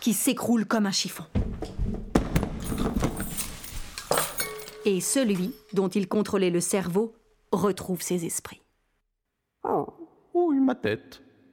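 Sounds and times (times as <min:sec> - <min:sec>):
speech: 0:00.0 - 0:01.7, 0:04.8 - 0:08.6, 0:09.6 - 0:11.2
steel chain breaking: 0:02.6 - 0:05.8.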